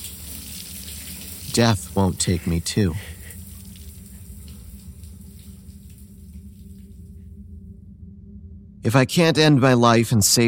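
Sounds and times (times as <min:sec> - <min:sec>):
tap water running while a razor is rinsed off: 0:00.0 - 0:07.2
speech: 0:01.6 - 0:03.1, 0:08.9 - 0:10.4.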